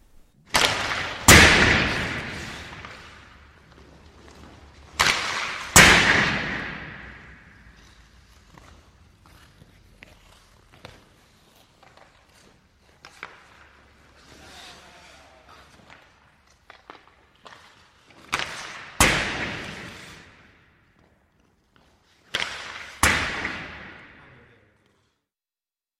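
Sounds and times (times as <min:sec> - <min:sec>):
ice hockey slap shots echoing in arena: 0:00.4 - 0:08.7, 0:15.9 - 0:20.7, 0:22.2 - 0:24.4.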